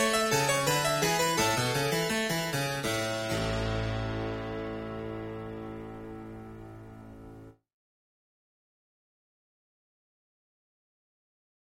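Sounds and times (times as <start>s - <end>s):
harpsichord suite in A minor: 0.0s - 7.6s.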